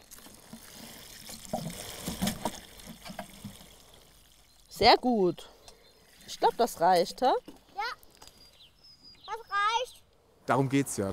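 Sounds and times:
water poured onto soil from a watering can: 0:00.0 - 0:08.5
speech: 0:04.8 - 0:05.5, 0:06.3 - 0:07.6, 0:10.5 - 0:11.1.

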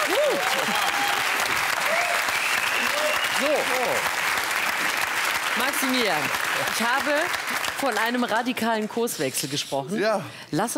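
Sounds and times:
audience applause: 0:00.0 - 0:08.6
speech: 0:00.4 - 0:01.0, 0:05.6 - 0:10.7.

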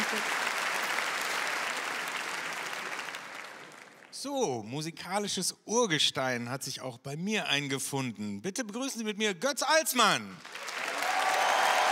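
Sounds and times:
audience applause: 0:00.0 - 0:04.1, 0:10.4 - 0:11.9
speech: 0:04.2 - 0:10.6.

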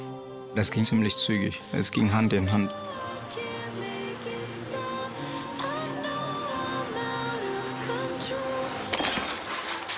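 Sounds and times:
steady tonal background: 0:00.0 - 0:09.9
speech: 0:00.6 - 0:03.6
hallway window glass shattering during a building fire: 0:08.9 - 0:09.9.

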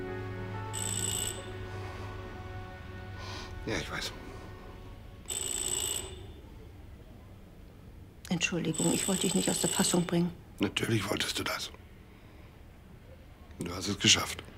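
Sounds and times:
low hum: 0:00.0 - 0:09.0
telephone ringing: 0:00.7 - 0:01.7, 0:05.3 - 0:06.4, 0:08.7 - 0:10.1
speech: 0:03.6 - 0:04.3, 0:08.3 - 0:11.8, 0:13.6 - 0:14.5.

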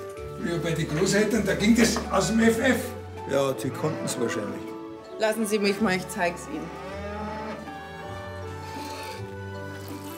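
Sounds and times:
speech: 0:00.4 - 0:06.9
several cows mooing inside a barn: 0:03.6 - 0:04.7, 0:06.0 - 0:10.1.

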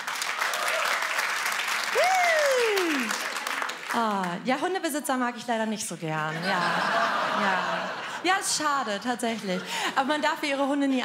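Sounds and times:
audience clapping: 0:00.0 - 0:04.6
speech: 0:04.0 - 0:11.0
laughter: 0:06.3 - 0:10.2.

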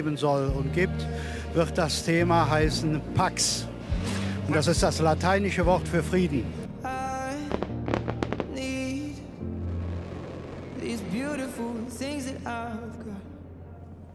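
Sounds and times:
speech: 0:00.0 - 0:06.6
fireworks exploding: 0:07.4 - 0:11.9.

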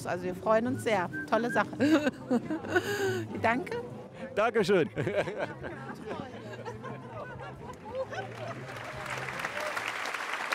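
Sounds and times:
speech: 0:00.0 - 0:06.7
laughter: 0:01.4 - 0:03.7, 0:04.6 - 0:09.8
audience applause: 0:07.8 - 0:10.5.

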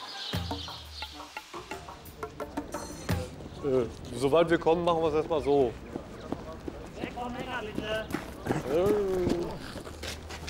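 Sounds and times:
speech: 0:03.6 - 0:05.8, 0:07.2 - 0:09.9
Mongolian horses' hooves during loading: 0:04.5 - 0:10.4.

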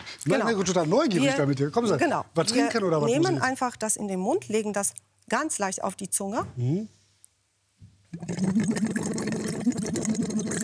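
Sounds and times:
speech: 0:00.2 - 0:07.0, 0:08.1 - 0:10.6
bubbling into water through a tube: 0:08.1 - 0:10.6.

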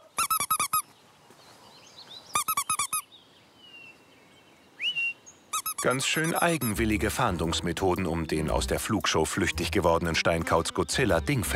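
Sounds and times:
squeaking toy mouse used to lure an escaped little owl: 0:00.0 - 0:00.8, 0:02.4 - 0:03.1, 0:05.5 - 0:06.8
speech: 0:05.8 - 0:11.5.

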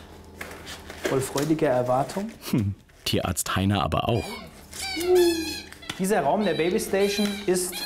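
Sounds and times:
speech: 0:01.1 - 0:07.8
kea parrots calling: 0:04.1 - 0:07.8.

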